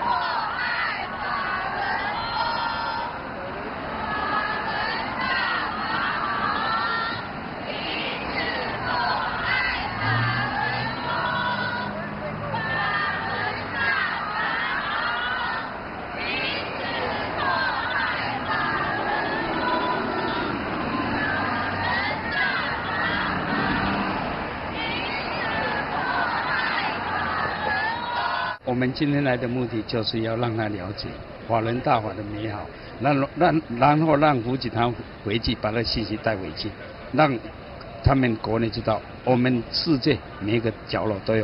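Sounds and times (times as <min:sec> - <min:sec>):
crowd chanting slogans as motorcade passes: 0:00.0 - 0:28.6
speech: 0:28.8 - 0:41.4.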